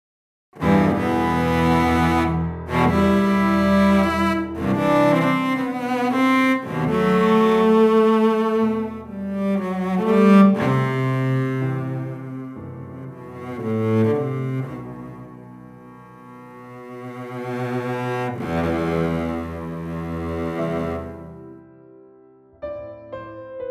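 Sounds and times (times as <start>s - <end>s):
cello: 0.6s - 21.9s.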